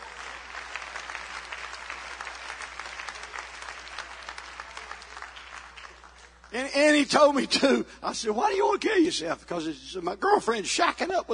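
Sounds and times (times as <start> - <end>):
crowd applauding: 0.0 - 7.0
speech: 6.5 - 11.3.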